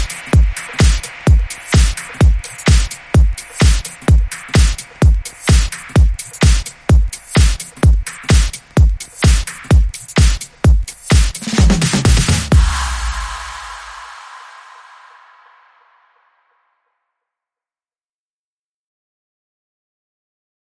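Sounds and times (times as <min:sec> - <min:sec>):
groove beat: 0:00.0 - 0:15.6.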